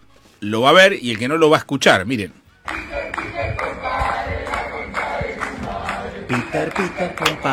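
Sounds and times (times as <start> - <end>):
speech: 0.4 - 2.4, 6.3 - 7.5
crowd of protesters shouting outside a house: 2.7 - 7.5.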